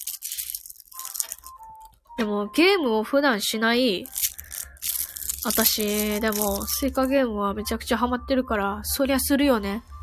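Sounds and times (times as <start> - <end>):
chocolate wrapper being torn open and crinkled: 0.0 - 1.6, 4.0 - 7.1
faint chewing crunches of chocolate: 0.0 - 1.6, 4.1 - 7.0
speech: 2.2 - 4.2, 5.4 - 9.9.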